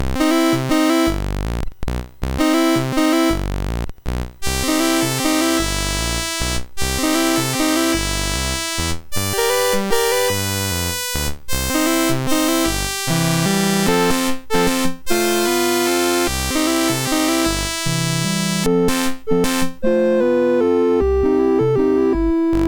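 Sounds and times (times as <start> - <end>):
MOS6581R3 SID chip sound: 0.0 - 22.6.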